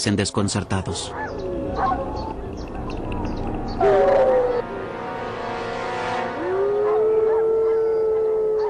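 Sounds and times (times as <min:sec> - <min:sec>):
speech: 0:00.0 - 0:02.0
wolves howling in response: 0:01.0 - 0:04.8, 0:06.2 - 0:08.6.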